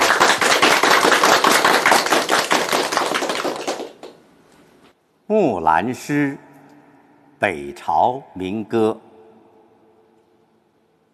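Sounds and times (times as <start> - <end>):
audience applause welcoming a reciter: 0.0 - 4.2
speech: 5.3 - 6.5, 7.4 - 9.1.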